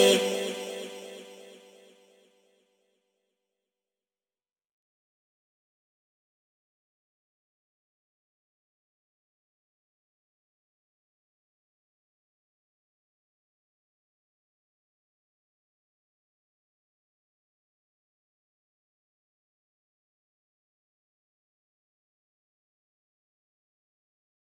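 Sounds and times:
person singing: 0:00.0 - 0:01.6.

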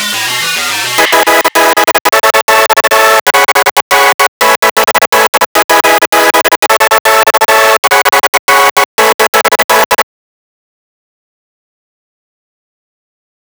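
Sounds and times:
lead synth: 0:00.2 - 0:10.0.

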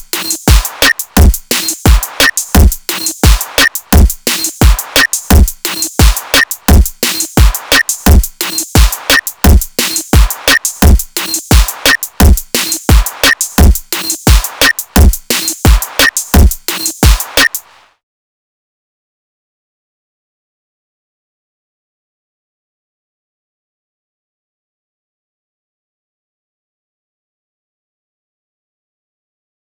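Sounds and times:
drums: 0:00.0 - 0:17.8.

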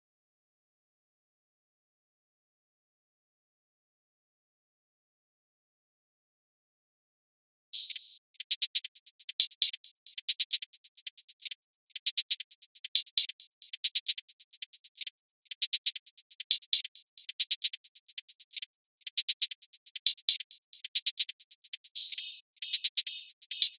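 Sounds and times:
hi-hats: 0:07.8 - 0:23.7.

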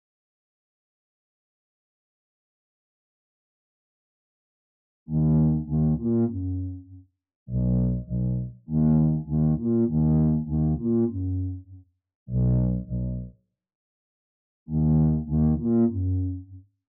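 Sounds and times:
bass: 0:05.1 - 0:13.4, 0:14.7 - 0:16.7.

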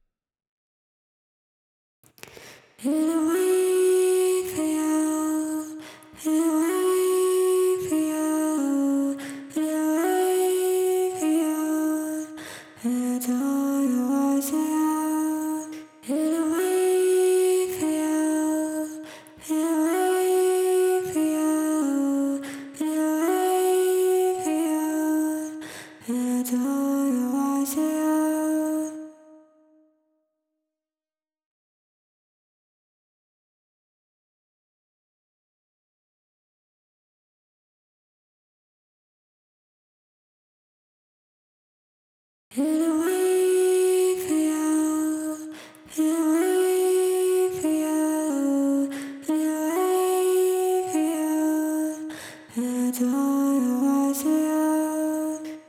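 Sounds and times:
vocals: 0:02.2 - 0:29.6, 0:42.5 - 0:55.6.

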